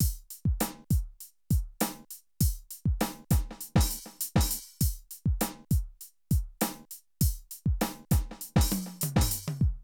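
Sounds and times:
streetsoul drum loops: 0.0 - 9.8.

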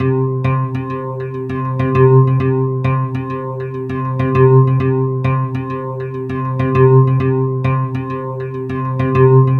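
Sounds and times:
pulsing guitar: 0.0 - 9.5.

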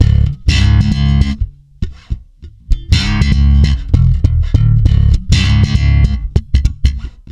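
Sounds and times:
funk swing bass in C sharp: 0.0 - 7.2.

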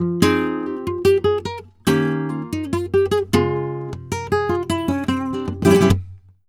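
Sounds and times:
flamenco guitar: 0.0 - 6.4.

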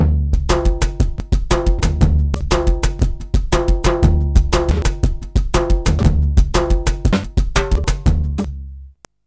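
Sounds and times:
modern percussion loops on MPC60: 0.0 - 8.6.

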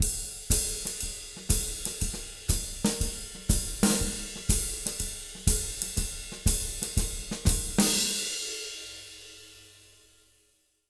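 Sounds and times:
jazz Latin shuffle drum loop: 0.0 - 8.6.

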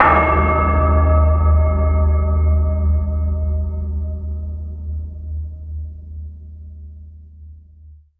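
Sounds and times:
MIRAGE synth bell: 0.0 - 3.3
MIRAGE synth flute: 0.0 - 4.4.

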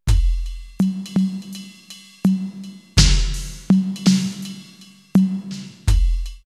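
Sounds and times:
slow easy drum machine loop: 0.0 - 6.4.

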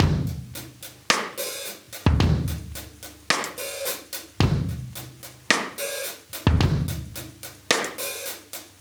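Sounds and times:
live drum breaks: 0.0 - 8.7.

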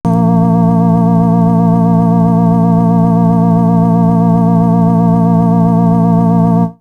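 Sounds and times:
synth: 0.0 - 6.8.

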